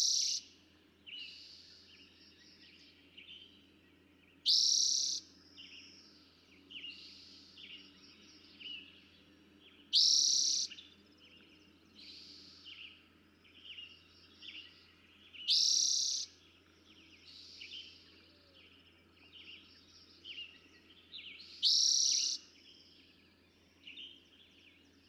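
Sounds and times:
Eastern towhee singing a buzzy trill: 0.0s - 25.0s.

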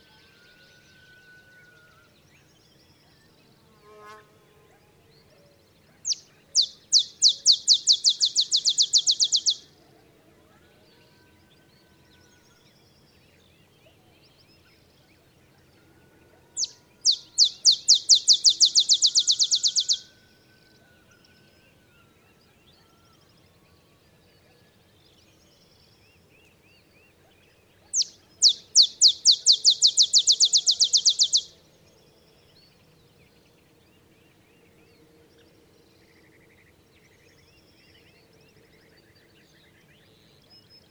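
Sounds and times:
olive sparrow chipping trill: 6.1s - 9.8s, 16.6s - 20.1s, 28.0s - 31.6s.

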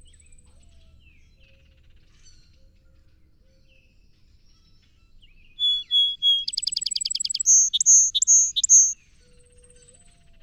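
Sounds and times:
song sparrow song with trill: 5.6s - 9.0s.

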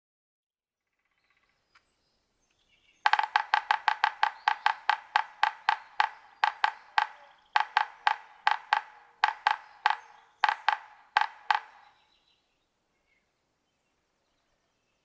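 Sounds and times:
yellow-bellied sapsucker nasal mewing notes: 3.0s - 12.2s.

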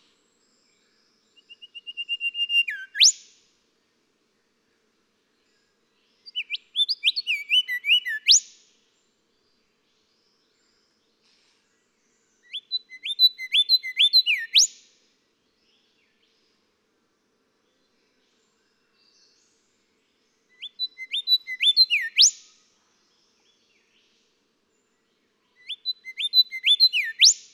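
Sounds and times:
golden whistler song: 1.4s - 3.3s, 6.3s - 8.5s, 12.5s - 14.8s, 20.6s - 22.5s, 25.6s - 27.5s.

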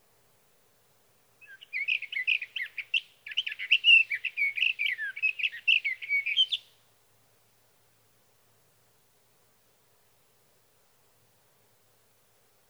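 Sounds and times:
sage thrasher song: 1.4s - 6.6s.

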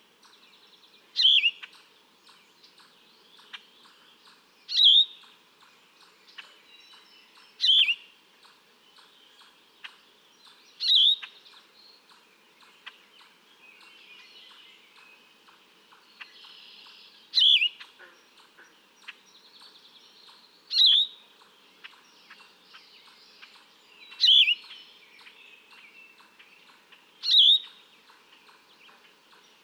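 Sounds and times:
Yellow-throated Vireo singing in Atlanta, Michigan: 0.2s - 29.6s.

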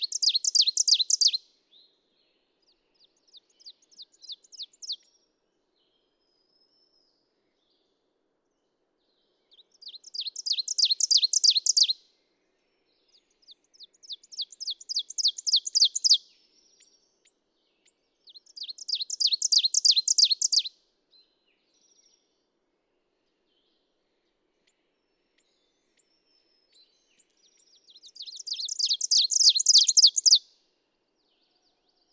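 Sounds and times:
ovenbird singing: 0.0s - 1.4s, 3.0s - 5.1s, 9.5s - 12.0s, 13.1s - 16.2s, 17.8s - 20.7s, 25.4s - 30.4s.

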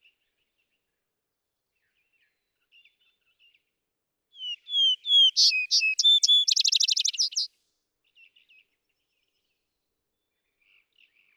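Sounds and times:
vesper sparrow singing: 4.4s - 7.5s.

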